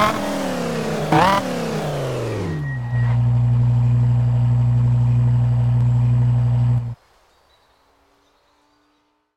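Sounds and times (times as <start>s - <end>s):
BMW M5 E60 car engine: 0.0s - 7.0s.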